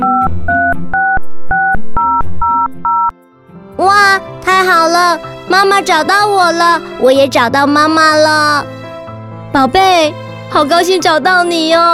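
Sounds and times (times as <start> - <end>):
telephone touch-tone keypad beeps: 0.0 - 3.1
speech: 4.7 - 8.7, 9.5 - 11.9.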